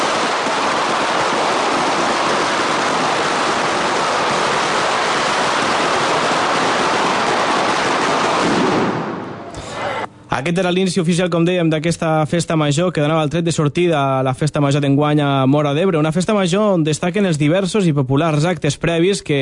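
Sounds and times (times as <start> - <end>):
opening firecracker barrage at town festival in Móra d'Ebre: 0.0 - 10.1
speech: 10.4 - 19.3.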